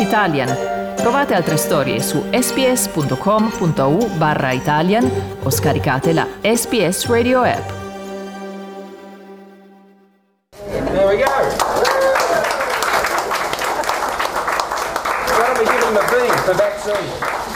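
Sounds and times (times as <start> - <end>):
speech: 0.1 - 7.8
applause during the vaccination of an 84-year-old woman: 11.2 - 17.5.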